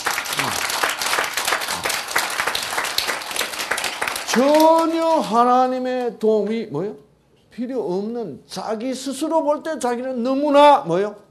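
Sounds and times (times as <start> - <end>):
audience applause: 0.0 - 5.3
speech: 4.4 - 11.2.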